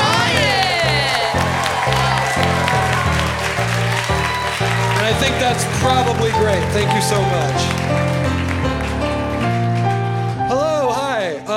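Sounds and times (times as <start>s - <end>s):
cheering with whoops and whistles: 0.0s - 7.6s
audience applause: 0.0s - 10.5s
speech: 5.8s - 8.2s.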